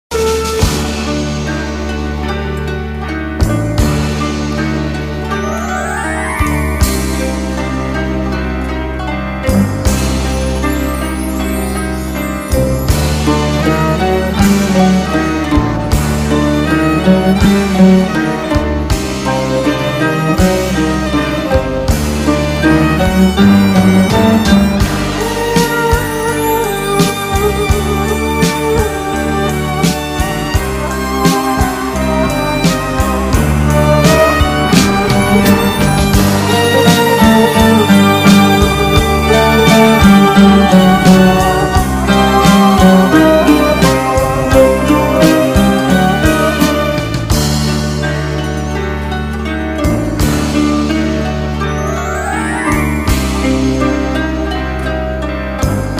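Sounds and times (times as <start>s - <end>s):
beautiful eastern melody for phone ringtone: 0.1s - 55.9s.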